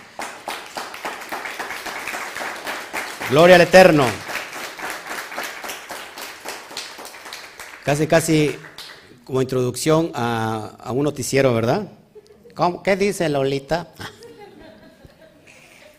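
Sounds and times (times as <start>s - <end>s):
audience applause: 0.0s - 9.1s
speech: 3.3s - 4.2s, 7.9s - 8.7s, 9.3s - 12.0s, 12.6s - 14.1s
laughter: 14.0s - 15.9s.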